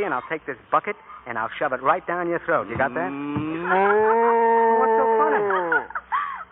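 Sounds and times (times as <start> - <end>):
speech: 0.0 - 5.8
cow mooing: 2.9 - 5.4
laughter: 3.4 - 6.4.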